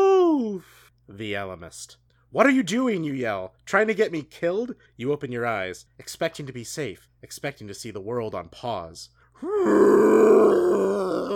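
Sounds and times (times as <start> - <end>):
speech: 1.1 - 11.3
T-Rex roar: 9.5 - 11.3.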